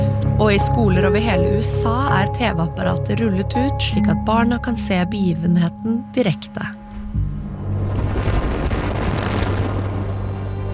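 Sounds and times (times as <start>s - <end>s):
speech: 0.4s - 7.2s
Challenger rocket engines igniting with a roar at launch: 7.5s - 10.7s.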